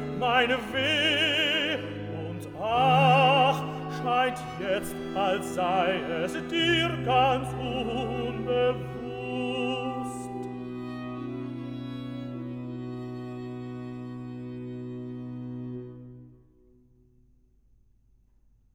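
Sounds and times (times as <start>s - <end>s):
tenor singing recitative from a cantata: 0.0s - 11.8s.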